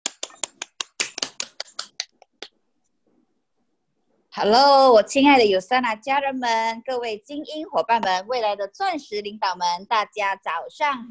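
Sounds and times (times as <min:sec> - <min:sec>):
scattered applause: 0:00.0 - 0:02.5
speech: 0:04.4 - 0:11.0.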